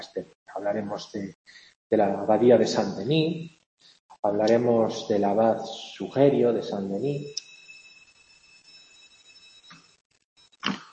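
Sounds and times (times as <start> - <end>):
speech: 0.0 - 7.4
school bell ringing: 7.2 - 10.0.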